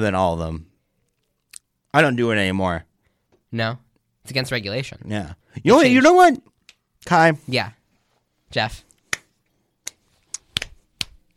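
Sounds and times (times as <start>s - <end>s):
speech: 0.0s - 0.7s, 2.0s - 2.9s, 3.5s - 7.8s, 8.5s - 8.9s
hand claps: 9.1s - 11.3s.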